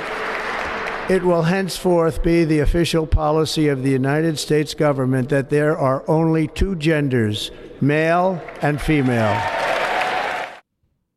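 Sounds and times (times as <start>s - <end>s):
crowd applauding a line in a political speech: 0.0s - 1.5s, 8.4s - 10.6s
speech: 1.1s - 9.6s.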